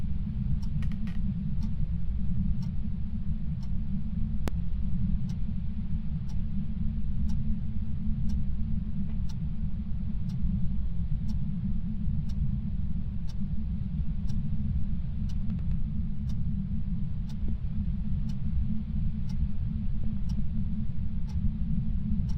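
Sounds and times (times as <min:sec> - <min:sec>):
ambience: 0:00.0 - 0:22.3.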